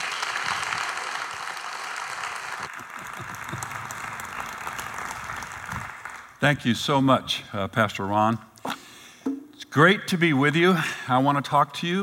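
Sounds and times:
church audience applause welcoming a guest speaker: 0.0s - 6.4s
speech: 6.4s - 8.5s, 9.7s - 12.0s.

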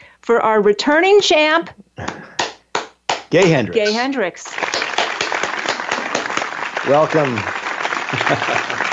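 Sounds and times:
speech: 0.3s - 2.2s, 3.3s - 4.7s, 6.8s - 8.8s
light audience applause: 2.1s - 8.9s
laughter: 8.0s - 8.9s.

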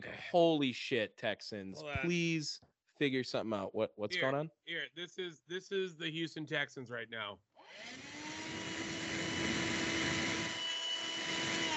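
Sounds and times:
speech: 0.0s - 8.2s
vacuum cleaner running: 7.8s - 11.7s.

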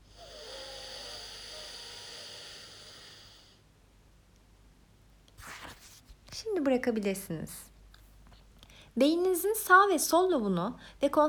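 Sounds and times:
breathing through the nose in an alternate-nostril breathing exercise: 0.0s - 3.6s
speech: 6.6s - 7.7s, 9.0s - 11.2s.

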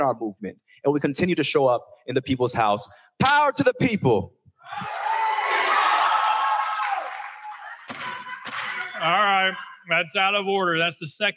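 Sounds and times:
speech: 0.0s - 5.0s, 9.0s - 11.3s
crowd yelling and shouting: 4.6s - 9.9s.

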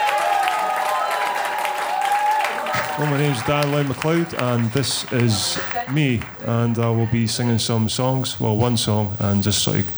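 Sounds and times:
audience clapping and cheering for a comedian at a comedy awards show: 0.0s - 9.9s
laughter: 0.0s - 9.9s
speech: 3.0s - 9.9s.

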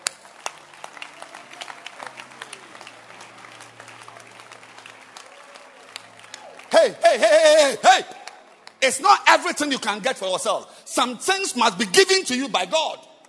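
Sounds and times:
audience clapping hands: 0.0s - 9.5s
speech: 6.8s - 8.2s, 8.8s - 13.1s.

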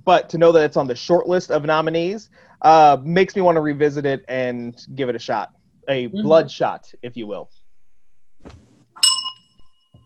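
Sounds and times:
speech: 0.0s - 7.6s, 8.4s - 8.6s
bell ringing: 9.0s - 10.0s.

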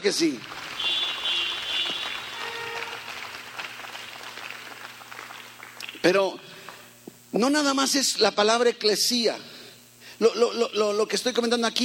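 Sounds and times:
speech: 0.0s - 0.7s, 6.0s - 6.5s, 7.3s - 9.5s, 10.2s - 11.8s
audience applauding: 0.2s - 6.2s.

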